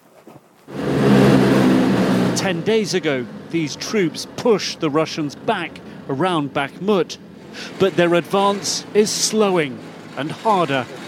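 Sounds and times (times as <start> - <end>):
military vehicle engine driving toward the front lines near Bakhmut: 0.7 - 11.0
speech: 2.4 - 11.0.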